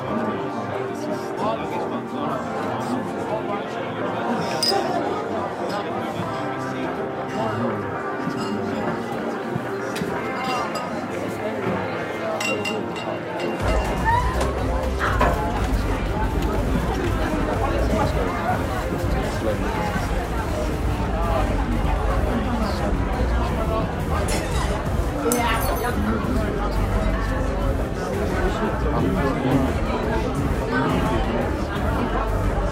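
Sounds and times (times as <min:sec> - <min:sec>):
murmuring bar crowd babble: 0:00.0 - 0:32.6
glasses clinking: 0:04.5 - 0:05.0, 0:08.2 - 0:08.9, 0:10.2 - 0:11.1, 0:12.4 - 0:14.0.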